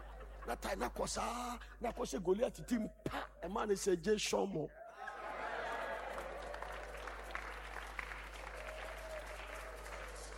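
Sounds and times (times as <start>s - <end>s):
laughter: 0.0s - 1.5s, 4.8s - 6.7s
speech: 0.5s - 5.1s
audience clapping: 5.0s - 10.3s.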